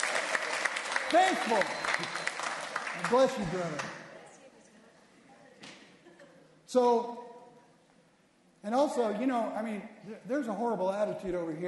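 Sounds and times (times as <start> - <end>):
audience applause: 0.0 - 4.0
speech: 1.1 - 2.2, 3.0 - 4.0, 6.7 - 7.2, 8.6 - 11.6.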